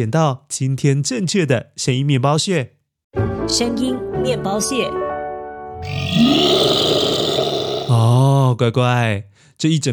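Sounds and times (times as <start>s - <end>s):
speech: 0.0s - 5.1s, 8.1s - 9.9s
imagined deep growling dragon roar: 5.8s - 8.3s.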